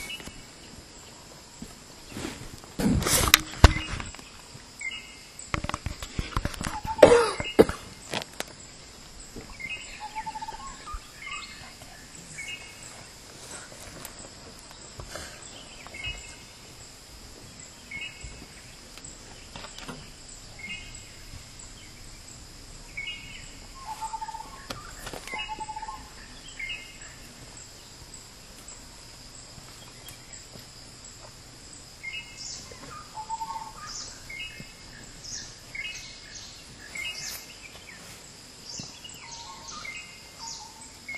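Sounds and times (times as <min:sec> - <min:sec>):
wildlife sanctuary soundscape in Kerala India: 0:00.0 - 0:41.1.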